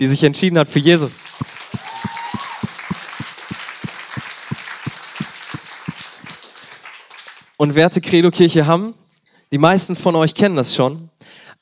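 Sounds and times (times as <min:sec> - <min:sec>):
speech: 0:00.0 - 0:01.8, 0:07.6 - 0:11.6
rhythmic audience clapping: 0:00.3 - 0:07.6.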